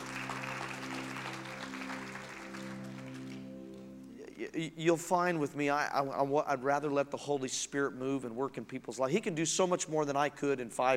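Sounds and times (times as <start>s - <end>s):
audience clapping: 0.0s - 3.9s
sustained low organ-like chord: 0.0s - 4.7s
speech: 4.4s - 10.9s.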